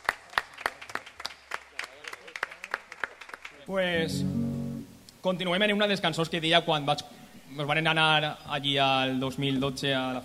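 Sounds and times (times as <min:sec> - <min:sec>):
audience applause: 0:00.0 - 0:03.7
speech: 0:03.7 - 0:04.5, 0:05.2 - 0:10.2.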